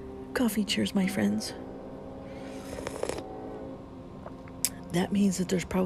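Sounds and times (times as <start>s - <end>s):
speech: 0.4s - 1.6s, 5.0s - 5.8s
passing train blowing its horn: 1.7s - 4.2s.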